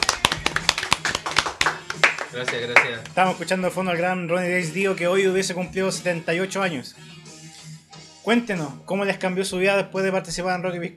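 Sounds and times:
small group applause: 0.0 - 3.2
speech: 2.3 - 7.2, 8.2 - 10.9.

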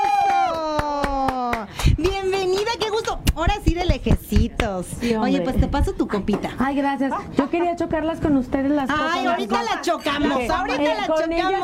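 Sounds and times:
applause welcoming a guest: 0.0 - 3.0
speech: 3.1 - 11.6.

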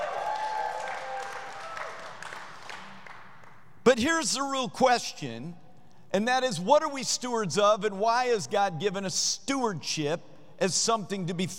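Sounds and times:
people whooping: 0.0 - 2.4
audience clapping: 0.0 - 3.7
speech: 3.9 - 11.5.

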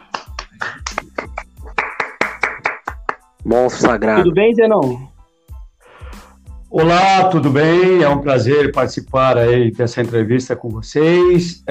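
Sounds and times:
applause: 0.0 - 3.2
speech: 3.4 - 5.1, 6.7 - 11.6.

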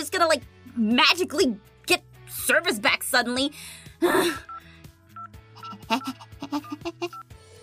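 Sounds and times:
speech: 0.2 - 4.5, 5.9 - 7.2
phone dialing beeps: 4.5 - 7.3.

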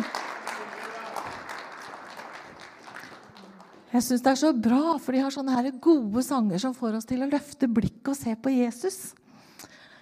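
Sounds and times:
audience applause: 0.0 - 4.0
speech: 3.9 - 9.2.

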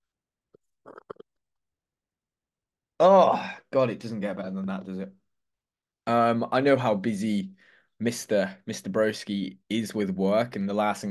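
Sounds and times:
sipping coffee: 0.5 - 1.4
speech: 3.0 - 5.2, 6.1 - 11.0.

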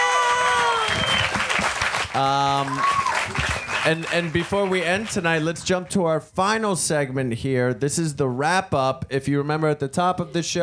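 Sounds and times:
audience applause: 0.0 - 5.6
speech: 2.1 - 10.6.

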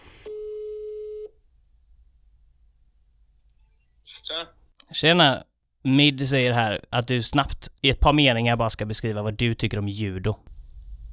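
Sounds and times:
telephone ringing tone while calling: 0.2 - 1.4
speech: 4.3 - 10.5.

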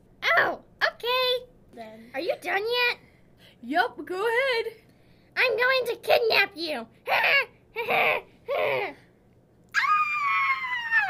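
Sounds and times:
speech: 1.9 - 3.0, 3.6 - 4.8, 5.4 - 9.0
little girl screaming: 9.7 - 11.0.

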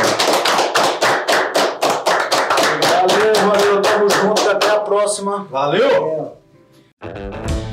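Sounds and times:
round of applause: 0.0 - 4.9
speech: 5.0 - 6.4, 7.0 - 7.6.

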